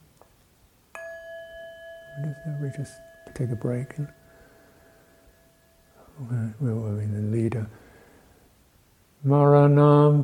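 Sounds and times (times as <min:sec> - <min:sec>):
meditation bell ringing: 0:00.9 - 0:07.1
speech: 0:02.2 - 0:04.2, 0:06.2 - 0:07.8, 0:09.2 - 0:10.2.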